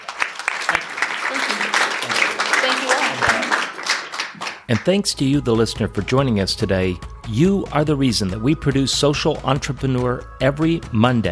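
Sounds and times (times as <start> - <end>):
audience applause: 0.0 - 5.0
speech: 4.7 - 11.3.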